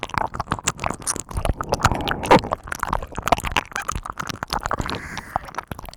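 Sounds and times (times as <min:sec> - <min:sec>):
slow licking of both ears: 0:00.2 - 0:03.3, 0:04.5 - 0:05.7.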